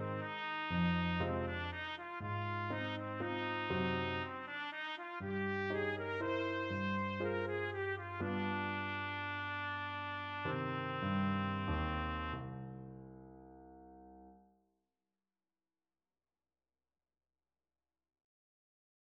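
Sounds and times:
trumpet playing a waltz: 0:00.0 - 0:12.7.

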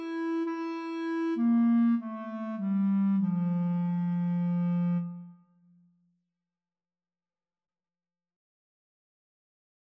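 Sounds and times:
flute in clarinet and flute duet: 0:00.0 - 0:05.5
clarinet in clarinet and flute duet: 0:00.0 - 0:05.6.

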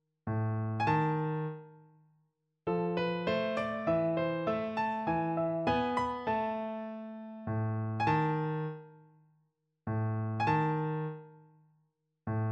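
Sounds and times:
piano: 0:00.3 - 0:01.9, 0:02.7 - 0:09.2, 0:09.9 - 0:11.6, 0:12.3 - 0:12.5.

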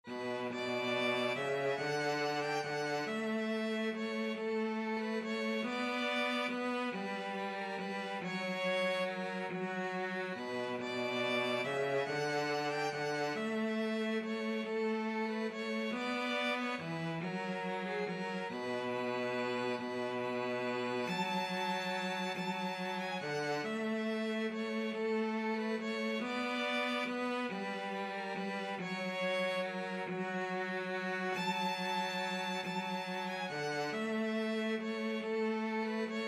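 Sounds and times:
violin and cello duet: 0:00.0 - 0:36.2.

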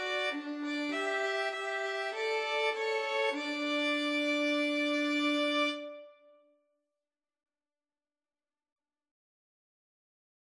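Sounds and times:
violin duet playing a hymn: 0:00.0 - 0:06.2.

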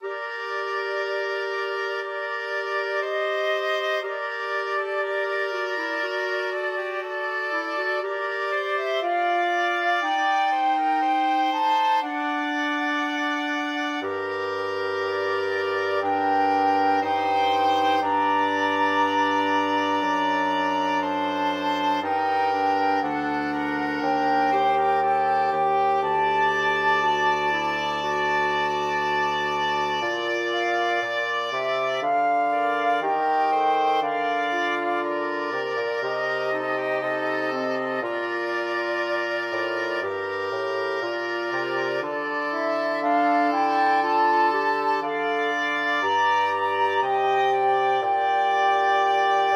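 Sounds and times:
flexible mixed ensemble of four players: 0:00.0 - 0:49.5.

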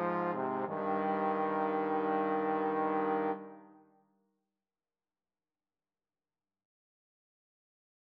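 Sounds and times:
largo trombone duet: 0:00.0 - 0:03.7.

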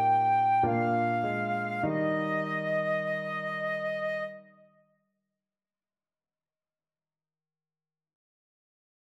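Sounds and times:
flute: 0:00.0 - 0:04.7.

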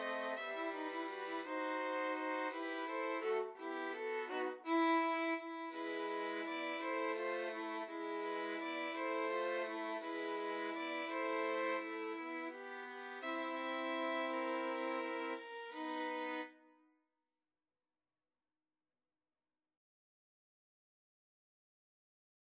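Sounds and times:
violin trio: 0:00.0 - 0:16.5.

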